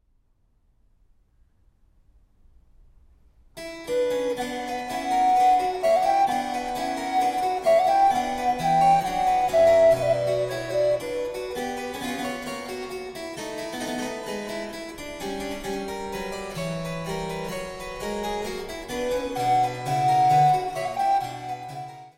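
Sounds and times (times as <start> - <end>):
flute sonata andante movement: 3.7 - 12.9, 16.3 - 22.1.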